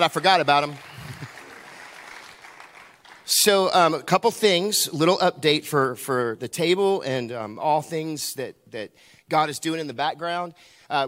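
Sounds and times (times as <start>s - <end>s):
speech: 0.0s - 0.9s, 3.3s - 11.0s
audience cheering and clapping: 0.0s - 3.4s.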